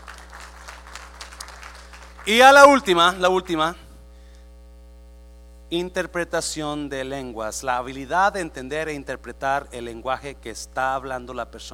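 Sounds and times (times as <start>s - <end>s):
audience applause: 0.0s - 2.3s
speech: 2.3s - 3.8s, 5.7s - 11.7s.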